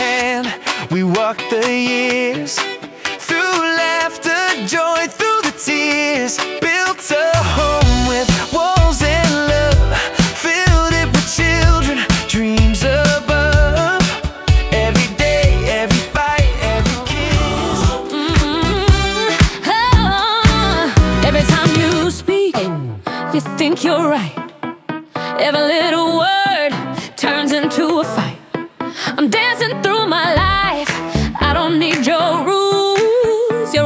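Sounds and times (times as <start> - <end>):
pop music on radio: 0.0 - 33.8.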